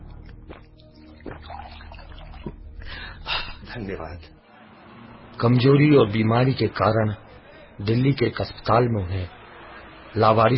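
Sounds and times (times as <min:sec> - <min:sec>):
water pouring into a cup or glass for drinking: 0:01.1 - 0:02.6
speech: 0:03.8 - 0:04.4, 0:05.4 - 0:07.2, 0:07.8 - 0:09.4, 0:10.1 - 0:10.5.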